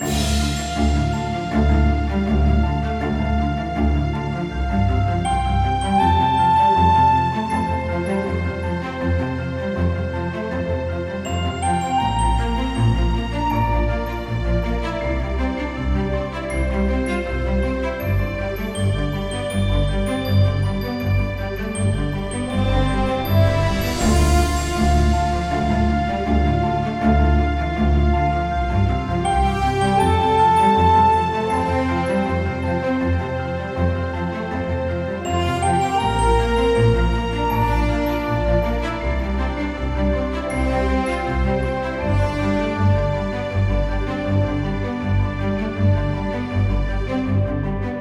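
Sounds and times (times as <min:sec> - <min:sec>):
background music: 0:00.0 - 0:47.9.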